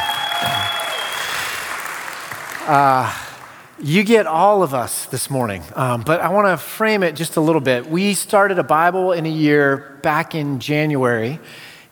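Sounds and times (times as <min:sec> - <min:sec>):
audience clapping: 0:00.0 - 0:03.8
speech: 0:02.7 - 0:03.2, 0:03.8 - 0:11.7.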